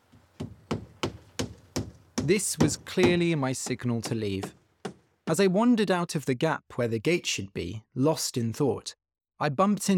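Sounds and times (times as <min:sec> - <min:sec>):
hammer striking nails into wood: 0:00.4 - 0:05.1
speech: 0:02.2 - 0:04.6, 0:05.3 - 0:09.9.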